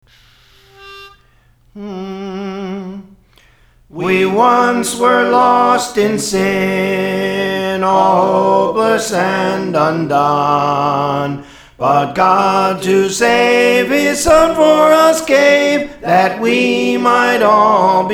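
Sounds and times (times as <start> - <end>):
soprano singing: 3.9 - 18.1.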